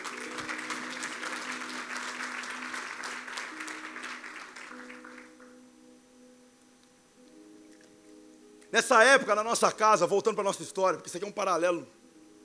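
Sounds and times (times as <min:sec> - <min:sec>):
audience applause: 0:00.0 - 0:05.5
speech: 0:08.7 - 0:12.0.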